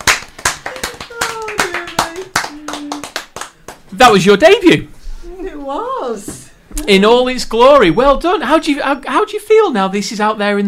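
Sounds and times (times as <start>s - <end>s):
small group clapping: 0.0s - 4.3s
people whooping: 0.6s - 3.1s
speech: 4.0s - 5.0s, 5.7s - 10.6s.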